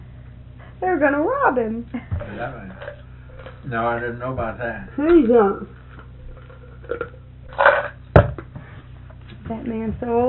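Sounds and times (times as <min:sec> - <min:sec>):
speech: 0:00.8 - 0:03.0, 0:03.6 - 0:05.8, 0:09.5 - 0:10.2
crunching on food: 0:05.7 - 0:08.1.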